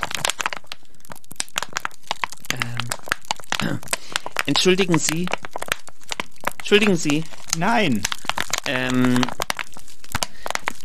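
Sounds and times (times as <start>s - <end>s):
plastic PET bottles crinkling: 0.0s - 10.8s
person's voice: 2.5s - 3.0s, 3.6s - 5.3s, 6.6s - 8.1s, 8.7s - 9.4s
speech: 3.7s - 5.4s, 6.7s - 9.4s.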